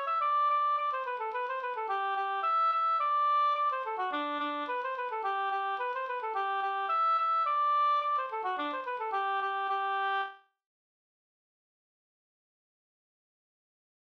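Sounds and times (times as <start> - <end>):
polka music: 0.0 - 10.4.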